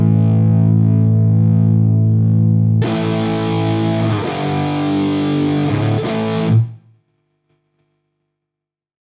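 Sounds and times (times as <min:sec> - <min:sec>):
electric guitar: 0:00.0 - 0:07.0.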